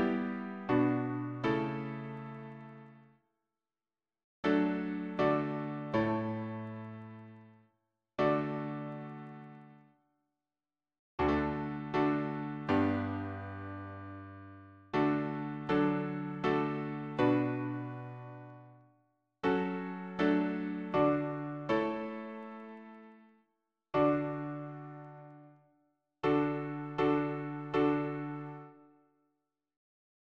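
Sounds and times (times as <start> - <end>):
piano harmony: 0.0 - 3.0, 4.5 - 7.4, 8.2 - 9.8, 11.2 - 18.8, 19.4 - 23.2, 24.0 - 25.5, 26.2 - 28.8.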